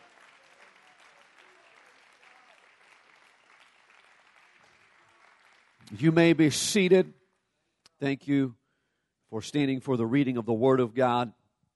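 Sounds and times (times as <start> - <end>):
audience clapping hands in praise: 0.0 - 7.5
speech: 5.9 - 7.2, 8.0 - 8.6, 9.3 - 11.4.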